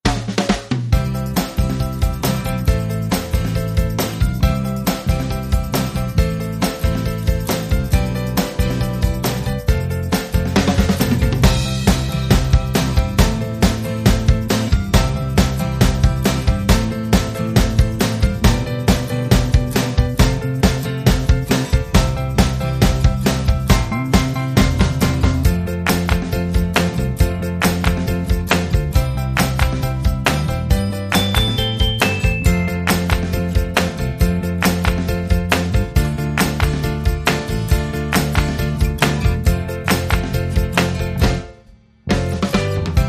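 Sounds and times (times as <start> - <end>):
girl group pop instrumental: 0.0 - 43.0.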